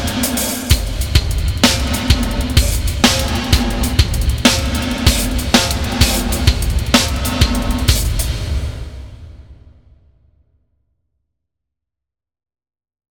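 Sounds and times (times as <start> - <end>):
hanger with reverb: 0.0 - 8.4.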